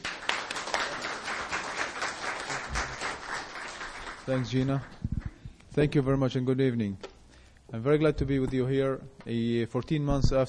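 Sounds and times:
audience applause welcoming a speaker: 0:00.0 - 0:05.0
speech: 0:04.3 - 0:05.1, 0:05.8 - 0:07.0, 0:07.7 - 0:10.4.

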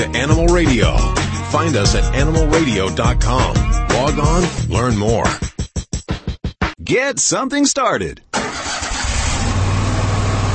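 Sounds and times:
speech: 0:00.0 - 0:05.5, 0:06.9 - 0:08.2
Kubota Commander zero-turn mower engine starting: 0:08.3 - 0:10.5.

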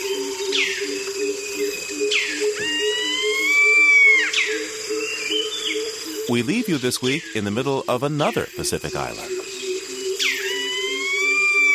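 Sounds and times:
loud bird call swooping downward: 0:00.0 - 0:06.4, 0:09.8 - 0:11.7
speech: 0:06.3 - 0:09.4.

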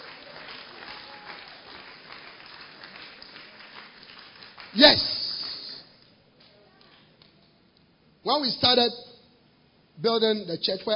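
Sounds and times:
audience clapping: 0:00.0 - 0:05.9
speech: 0:04.7 - 0:05.1, 0:08.3 - 0:09.1, 0:10.0 - 0:10.9.

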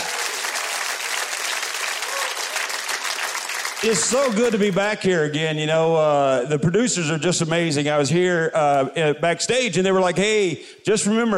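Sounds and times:
audience clapping for the band: 0:00.0 - 0:05.0
speech: 0:03.8 - 0:11.3.

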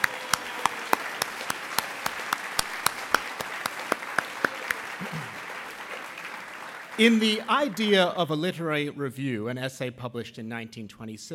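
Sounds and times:
applause at an award evening celebrating literary review writers: 0:00.0 - 0:08.7
speech: 0:07.0 - 0:11.3.

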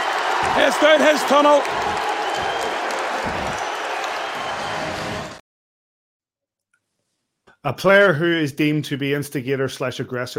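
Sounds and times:
hockey teammates applauding: 0:00.0 - 0:05.4
speech: 0:00.6 - 0:02.5, 0:07.6 - 0:10.3.

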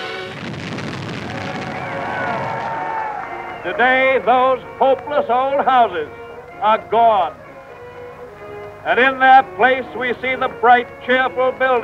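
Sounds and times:
demolition blast clearing old slum houses: 0:00.0 - 0:03.2
speech: 0:03.6 - 0:07.4, 0:08.8 - 0:11.8.

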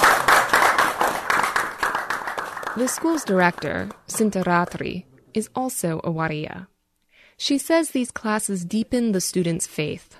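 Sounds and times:
students at a school applauding enthusiastically after a talk: 0:00.0 - 0:05.0
speech: 0:02.8 - 0:06.7, 0:07.4 - 0:10.1.

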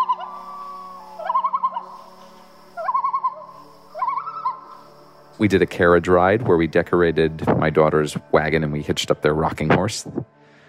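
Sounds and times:
recording of loon calls in the Adirondacks played on a phone: 0:00.0 - 0:04.9
speech: 0:05.4 - 0:10.3.

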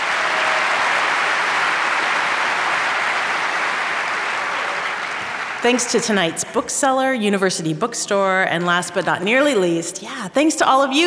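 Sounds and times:
audience round of applause for sponsors: 0:00.0 - 0:06.4
speech: 0:05.6 - 0:11.0.

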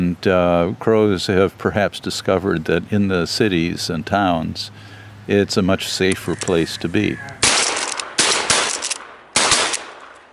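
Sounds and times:
speech: 0:00.0 - 0:07.4
gunshots from a crow hunt: 0:07.4 - 0:10.3.

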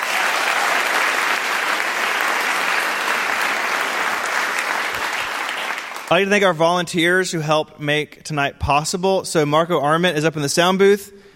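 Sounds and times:
audience applause in theater: 0:00.0 - 0:06.2
speech: 0:06.1 - 0:11.2.

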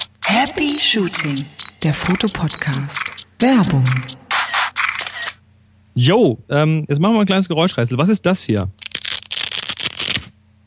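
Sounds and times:
speech: 0:00.5 - 0:04.2, 0:06.0 - 0:08.8
velcro fastener on a Pixel Pocket Rocket memory card pouch torn open: 0:08.8 - 0:10.4.

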